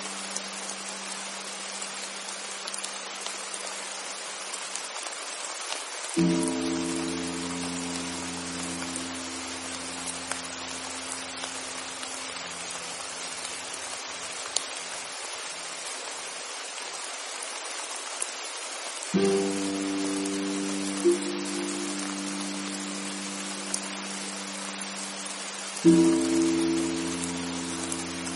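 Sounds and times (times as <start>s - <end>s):
rain falling: 0.0s - 28.3s
deep held chords: 6.2s - 12.4s, 19.2s - 28.3s.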